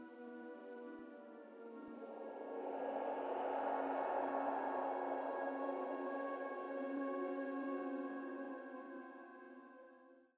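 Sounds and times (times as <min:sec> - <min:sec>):
breath music for hypnosis: 0:00.5 - 0:09.3.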